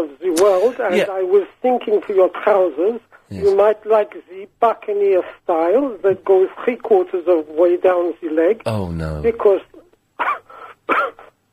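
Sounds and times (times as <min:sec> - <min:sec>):
speech: 0:00.0 - 0:11.2
person coughing: 0:10.2 - 0:11.3.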